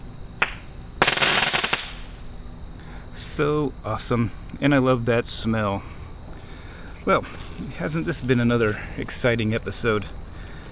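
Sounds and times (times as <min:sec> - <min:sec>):
crackle bomb firework: 0:00.4 - 0:02.2
speech: 0:03.2 - 0:05.9, 0:07.1 - 0:10.2.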